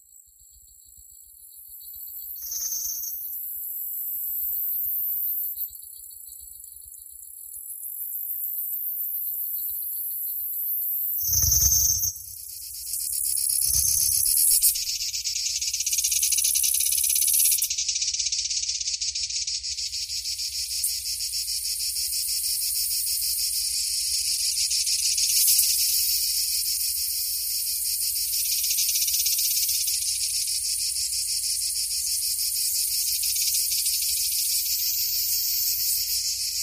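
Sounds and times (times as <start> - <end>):
forest ambience: 0.0 - 8.3, 9.6 - 36.6.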